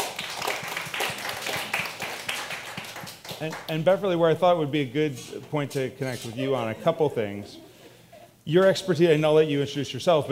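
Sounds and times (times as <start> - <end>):
audience applause: 0.0 - 3.7
speech: 3.4 - 7.7, 8.5 - 10.2
laughter: 6.0 - 9.3.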